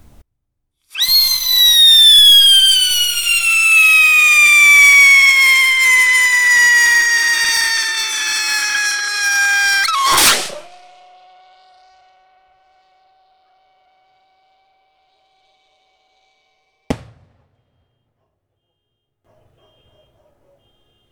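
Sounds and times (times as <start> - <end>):
two-stage gold top rocket firework whistling at an Independence Day celebration: 0.9 - 11.6, 16.9 - 17.8.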